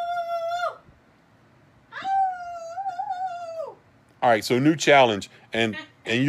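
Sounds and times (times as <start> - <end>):
person imitating a Sasquatch yell: 0.0 - 0.8, 1.9 - 3.8
speech: 4.2 - 6.2.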